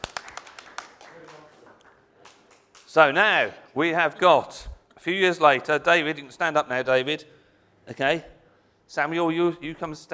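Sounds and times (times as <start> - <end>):
short applause for a child performing in a play: 0.0 - 2.9
speech: 2.9 - 8.3, 8.9 - 10.1.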